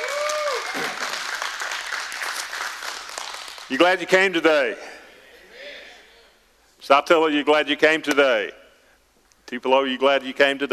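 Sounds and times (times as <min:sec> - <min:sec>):
church congregation applauding at the South Tillow campus: 0:00.0 - 0:04.2
speech: 0:03.7 - 0:04.9, 0:06.8 - 0:08.6, 0:09.5 - 0:10.7.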